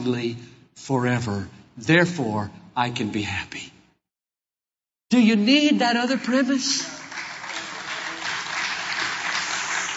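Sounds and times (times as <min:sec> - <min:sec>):
speech: 0:00.0 - 0:03.7, 0:05.1 - 0:07.0
audience applause: 0:06.8 - 0:09.9.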